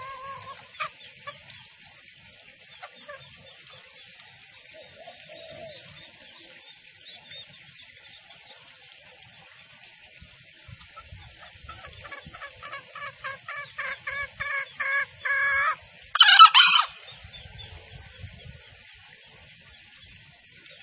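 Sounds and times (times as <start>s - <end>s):
female junglefowl call used as a lure for trapping in the forest: 0.0s - 1.5s, 11.0s - 17.1s.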